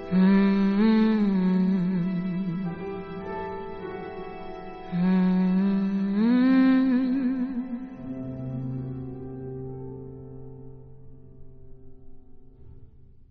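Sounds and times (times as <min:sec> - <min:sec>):
lullaby music: 0:00.0 - 0:10.3.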